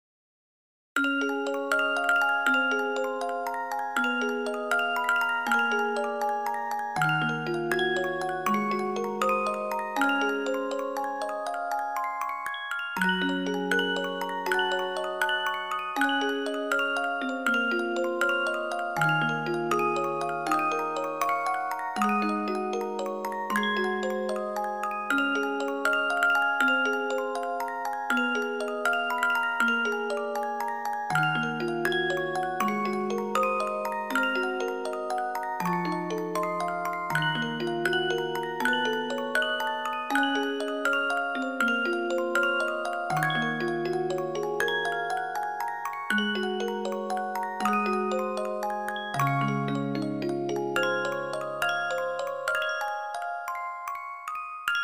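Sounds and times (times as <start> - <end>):
Christmas song: 1.0 - 54.8.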